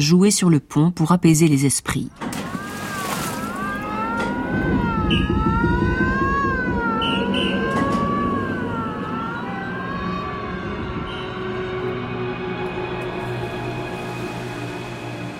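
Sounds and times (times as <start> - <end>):
speech: 0.0 - 2.4
ship's sirens whistling on a sinking ship: 2.2 - 15.3
dense low rumble: 3.6 - 14.5.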